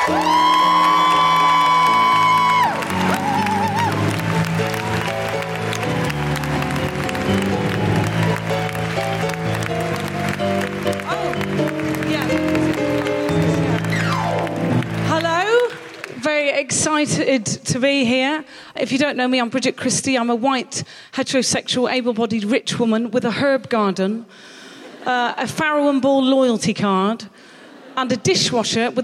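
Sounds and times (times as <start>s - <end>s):
live comedy audience applause: 0.0s - 16.4s
speech: 0.1s - 0.4s, 16.6s - 27.4s, 28.0s - 29.0s.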